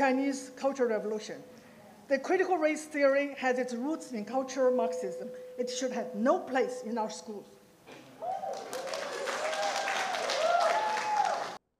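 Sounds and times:
speech: 0:00.0 - 0:07.6
meeting audience applauding: 0:08.2 - 0:11.6.

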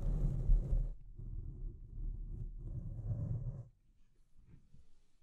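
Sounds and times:
deep scratching: 0:00.0 - 0:03.7.

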